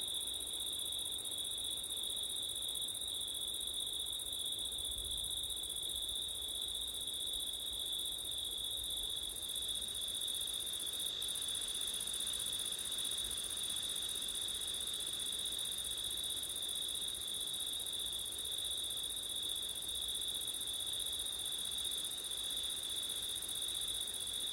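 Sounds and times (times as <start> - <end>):
crickets singing: 0.0 - 24.5.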